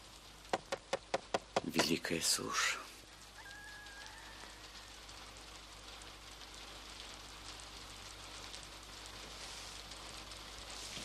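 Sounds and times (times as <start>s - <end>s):
knocking on a wall barometer: 0.5s - 1.9s
speech: 1.7s - 2.8s.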